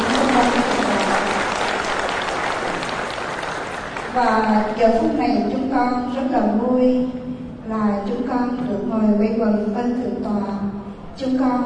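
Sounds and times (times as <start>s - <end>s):
audience applause at a Vietnamese Buddhist gathering welcoming a visiting abbot: 0.0s - 4.3s
speech: 4.2s - 11.6s.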